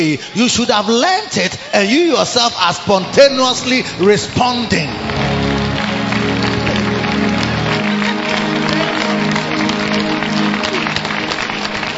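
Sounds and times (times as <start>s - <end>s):
speech: 0.0s - 5.2s
crowd clapping: 3.5s - 11.9s.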